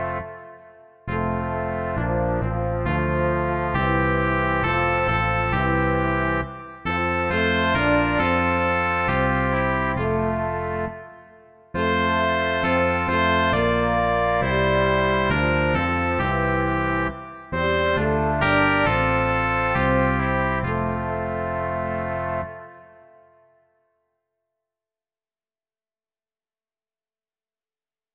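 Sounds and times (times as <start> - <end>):
bass guitar: 0.0 - 0.4, 1.1 - 11.0, 11.8 - 22.6
2 trumpets: 0.0 - 23.4
French horn: 0.0 - 23.4.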